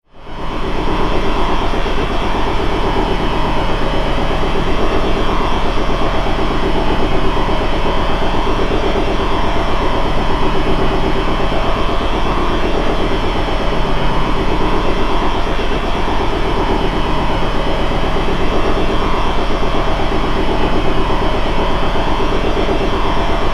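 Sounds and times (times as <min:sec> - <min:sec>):
big industrial machine running steadily: 0:00.0 - 0:23.5.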